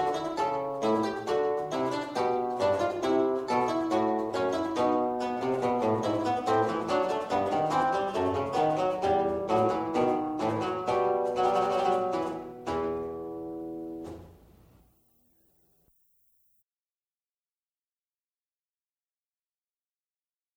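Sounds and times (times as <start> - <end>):
historical keyboard lute: 0.0 - 14.6.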